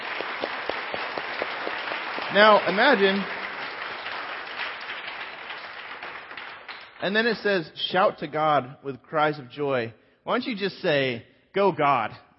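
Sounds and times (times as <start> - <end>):
audience clapping loudly together: 0.0 - 7.6
speech: 2.3 - 3.4, 7.0 - 12.2.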